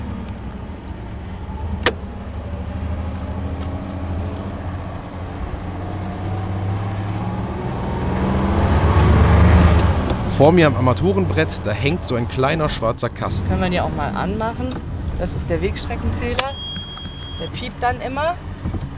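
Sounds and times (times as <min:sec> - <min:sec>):
old car engine running: 0:00.0 - 0:18.9
speech: 0:10.4 - 0:16.6, 0:17.4 - 0:18.8.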